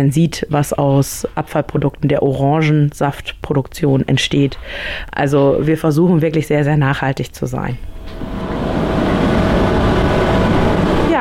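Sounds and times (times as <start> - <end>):
speech: 0.0 - 8.4
large industrial feather dryer running: 7.8 - 11.1.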